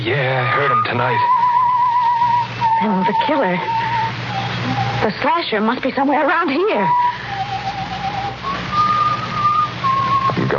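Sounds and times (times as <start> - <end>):
speech: 0.0 - 1.4, 2.8 - 3.9, 4.7 - 7.2
low hum: 0.0 - 10.5
man whistling a tune: 0.4 - 5.0, 6.8 - 10.5.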